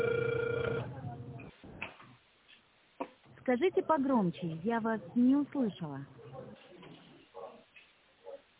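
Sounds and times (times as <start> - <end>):
telephone ringback tone beep: 0.0 - 0.9
speech: 3.5 - 6.2.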